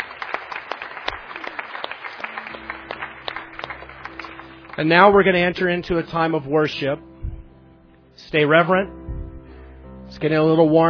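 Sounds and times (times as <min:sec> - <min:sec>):
crowd of people clapping in a large room: 0:00.0 - 0:05.6
speech: 0:04.8 - 0:07.1, 0:08.3 - 0:09.0, 0:10.1 - 0:10.8.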